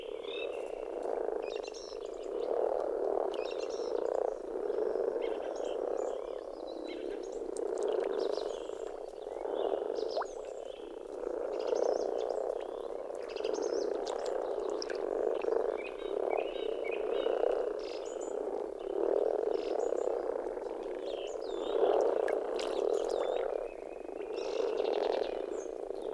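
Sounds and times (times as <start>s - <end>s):
common frogs purring croaks: 0.0s - 26.1s.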